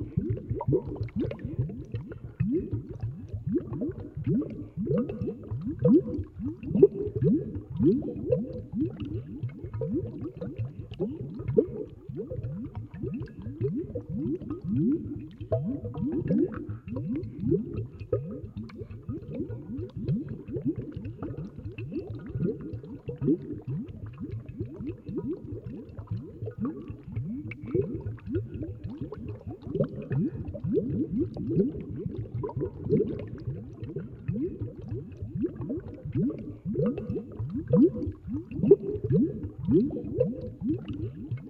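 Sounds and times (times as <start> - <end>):
heavy solution boiling: 0.0 - 41.4.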